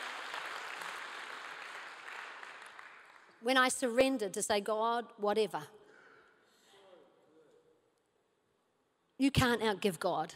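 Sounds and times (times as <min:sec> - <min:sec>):
crowd applauding: 0:00.0 - 0:03.4
speech: 0:03.4 - 0:05.8, 0:09.2 - 0:10.3.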